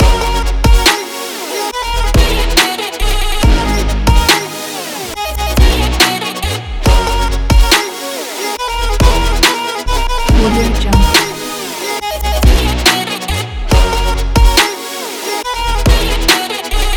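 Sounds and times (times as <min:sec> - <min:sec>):
future bass music: 0:00.0 - 0:16.9
vocal chops in future bass music: 0:09.4 - 0:12.0.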